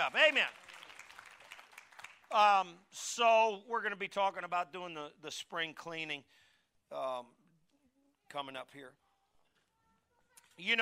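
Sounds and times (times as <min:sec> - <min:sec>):
speech: 0:00.0 - 0:00.6, 0:02.3 - 0:07.4, 0:08.3 - 0:09.0, 0:10.6 - 0:10.8
audience applauding: 0:00.0 - 0:02.6.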